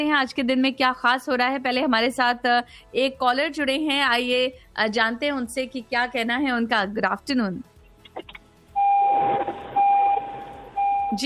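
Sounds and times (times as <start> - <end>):
speech: 0.0 - 8.4
car door-open warning chime: 8.8 - 11.2.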